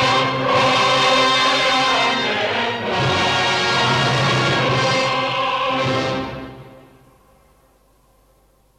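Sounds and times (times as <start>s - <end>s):
choir singing: 0.0s - 6.8s.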